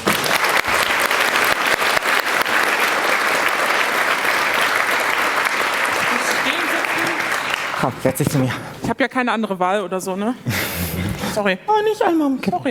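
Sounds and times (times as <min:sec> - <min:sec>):
audience applause: 0:00.0 - 0:08.4
speech: 0:07.8 - 0:10.8, 0:11.4 - 0:12.6.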